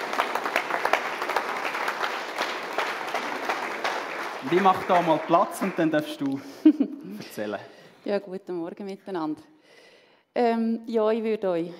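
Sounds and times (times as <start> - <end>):
audience applause: 0.0 - 6.5
speech: 4.4 - 9.5, 10.4 - 11.7.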